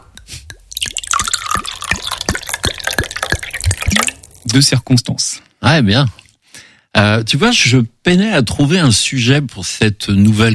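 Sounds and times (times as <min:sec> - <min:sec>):
liquid poured from a bottle about a third full: 0:00.1 - 0:04.8
speech: 0:04.5 - 0:06.2, 0:07.0 - 0:10.5.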